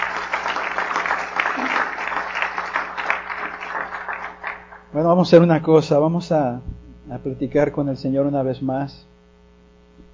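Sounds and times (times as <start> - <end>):
audience applause: 0.0 - 5.0
speech: 5.0 - 9.1.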